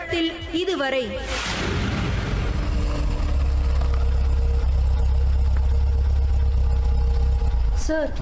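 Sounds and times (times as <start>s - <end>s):
speech: 0.1s - 1.8s, 7.9s - 8.1s
car engine idling at a forest entrance: 2.0s - 8.1s.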